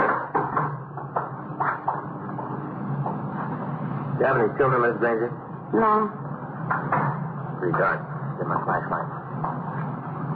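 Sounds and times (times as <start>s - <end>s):
irregular wooden knocks and thumps of a closet door being opened: 0.0s - 3.3s
low steady hum: 0.0s - 10.3s
speech: 4.2s - 7.0s, 7.6s - 9.7s.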